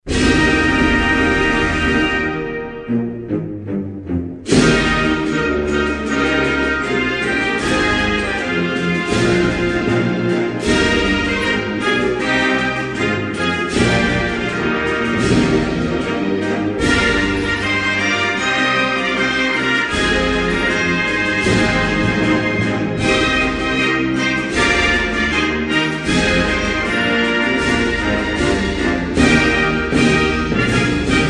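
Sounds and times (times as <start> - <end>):
national anthem: 0.0 - 31.2.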